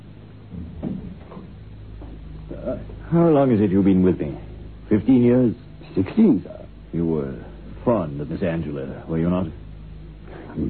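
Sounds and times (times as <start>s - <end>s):
low hum: 0.0s - 10.6s
door pushed shut with a dull thud: 0.5s - 1.5s
speech: 2.5s - 9.6s.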